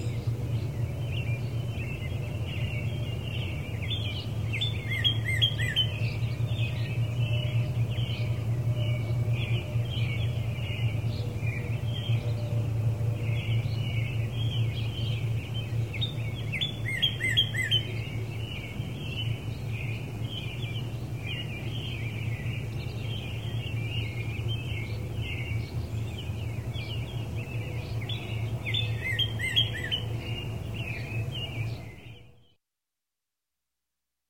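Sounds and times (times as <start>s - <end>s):
various birds in early morning residential area: 0.0s - 32.6s.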